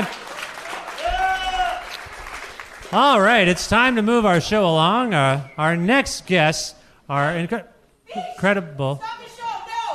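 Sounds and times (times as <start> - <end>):
audience clapping and cheering for a performer at a stage show: 0.0 - 4.6
sustained whoop or whistle: 1.0 - 1.8
speech: 2.9 - 9.2.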